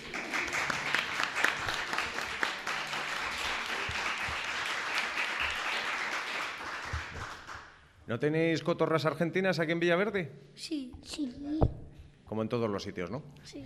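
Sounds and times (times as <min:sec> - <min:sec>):
applause: 0:00.0 - 0:07.9
speech: 0:08.1 - 0:13.6.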